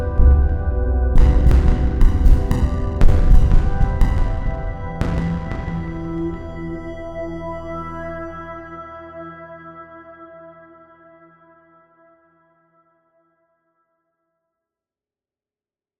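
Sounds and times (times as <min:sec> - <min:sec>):
sine tones: 0:00.0 - 0:10.8.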